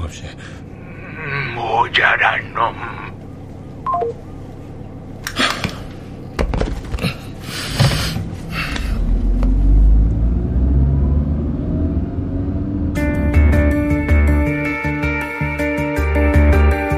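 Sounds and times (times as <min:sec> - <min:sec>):
speech: 0:00.1 - 0:00.6, 0:01.2 - 0:03.0
short electronic beeps: 0:03.8 - 0:04.2
car engine started for departure: 0:07.6 - 0:16.8.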